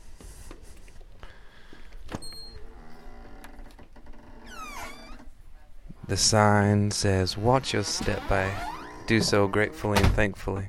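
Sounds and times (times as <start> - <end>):
bookmobile door squealing as it swings: 4.4 - 5.2, 7.8 - 9.6
speech: 6.1 - 10.6.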